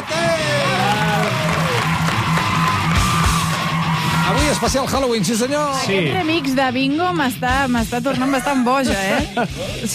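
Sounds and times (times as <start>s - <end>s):
crowd clapping and cheering: 0.0s - 6.6s
speech: 4.6s - 9.9s.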